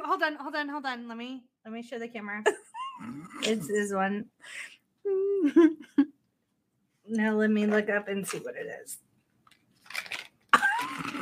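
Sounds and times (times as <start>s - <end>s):
speech: 0.1s - 6.2s, 7.1s - 9.1s
person chewing candy: 9.8s - 11.2s.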